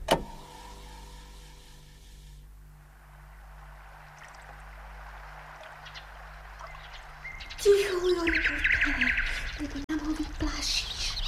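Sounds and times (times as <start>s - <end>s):
steady hiss: 0.0s - 8.2s
low hum: 0.0s - 11.2s
nightingale singing at sunset: 3.1s - 9.8s.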